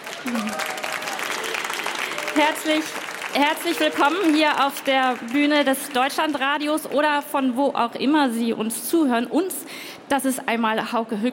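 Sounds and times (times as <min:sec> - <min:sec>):
faint crowd murmur: 0:00.0 - 0:02.8
audience applause at book fair: 0:00.0 - 0:06.6
speech: 0:02.4 - 0:11.3.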